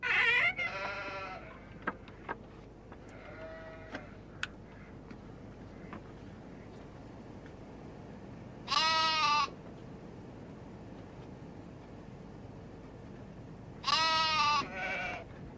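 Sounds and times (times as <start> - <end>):
lamb bleating: 0.0 - 1.6, 3.1 - 4.2, 8.7 - 9.5, 13.8 - 15.2.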